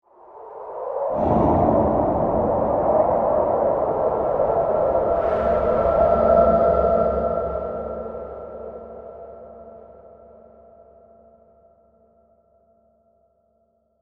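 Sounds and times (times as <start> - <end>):
haunting horror wind swell: 0.1 - 11.1.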